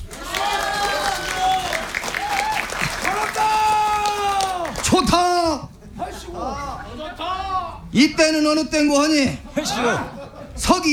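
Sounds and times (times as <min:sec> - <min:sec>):
applause: 0:00.0 - 0:05.4
laughter: 0:00.0 - 0:10.9
speech: 0:07.9 - 0:10.9.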